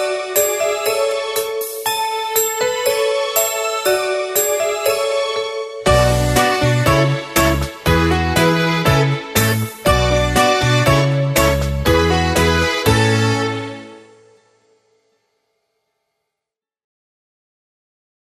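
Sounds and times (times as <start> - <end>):
Russian folk melody backing track: 0.0 - 14.2.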